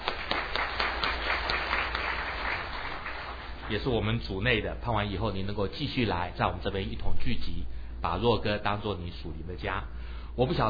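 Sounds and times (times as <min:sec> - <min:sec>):
crowd applauding in welcome: 0:00.0 - 0:04.0
speech: 0:03.7 - 0:10.6.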